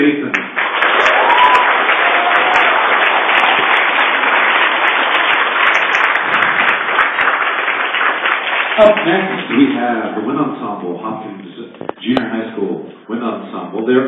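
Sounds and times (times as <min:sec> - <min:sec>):
audience applause: 0:00.3 - 0:09.8
speech: 0:08.8 - 0:11.4, 0:12.0 - 0:14.0.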